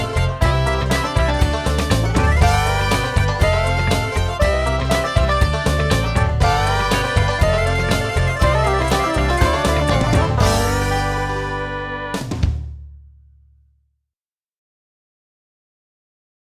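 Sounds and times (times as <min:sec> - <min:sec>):
country music on a Roland XP-80 synthesizer: 0:00.0 - 0:12.6.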